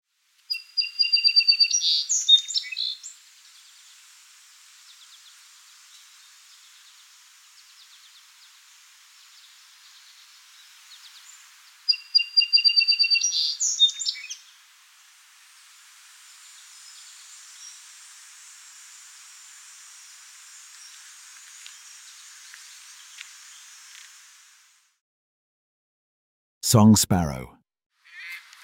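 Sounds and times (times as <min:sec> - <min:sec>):
Eastern Phoebe song: 0:00.5 - 0:03.0, 0:11.9 - 0:14.3
faint steady hiss: 0:02.0 - 0:11.9, 0:13.2 - 0:25.0
speech: 0:26.7 - 0:27.6.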